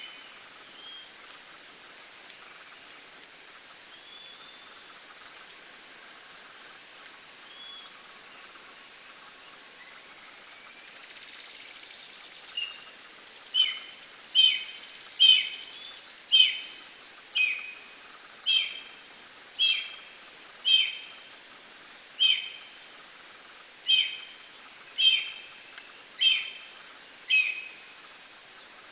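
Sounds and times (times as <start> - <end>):
Black-and-white Hawk-Eagle whistled calls: 13.5 - 17.8, 18.4 - 18.8, 19.6 - 20.0, 20.6 - 21.1, 22.2 - 22.6, 23.8 - 24.3, 25.0 - 25.6, 26.2 - 26.6, 27.3 - 27.9.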